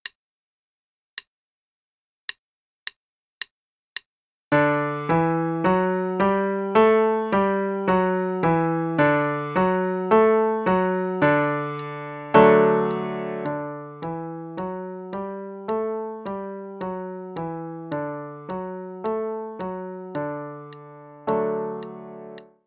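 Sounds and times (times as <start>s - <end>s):
D major pentascale played: 4.6s - 22.5s.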